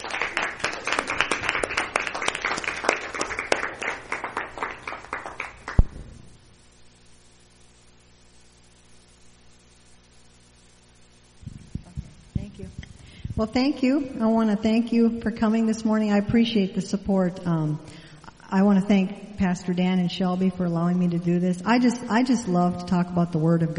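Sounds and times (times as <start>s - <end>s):
church congregation applause welcoming a woman speaker: 0.0s - 5.9s
speech: 13.4s - 23.7s.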